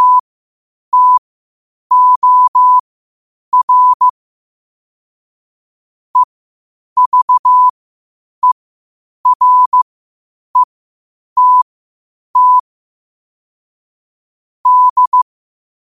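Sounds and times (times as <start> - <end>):
morse code at 5 wpm: 0.0 - 0.2, 0.9 - 1.2, 1.9 - 2.8, 3.5 - 4.1, 7.0 - 7.7, 9.2 - 9.8, 11.4 - 11.6, 12.4 - 12.6, 14.7 - 15.3.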